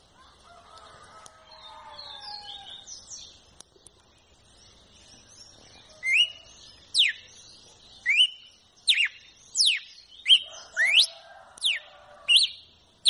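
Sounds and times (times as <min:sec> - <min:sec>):
red-cowled cardinal song of clear whistles: 0:05.9 - 0:07.3, 0:08.0 - 0:13.0.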